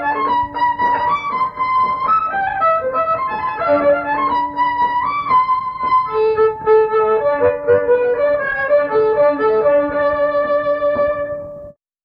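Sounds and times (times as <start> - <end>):
violin tremolo: 0.0 - 11.7.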